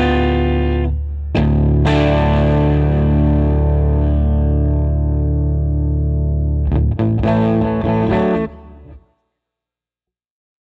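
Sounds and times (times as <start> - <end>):
electric guitar through a tweed amplifier: 0.0 - 9.0.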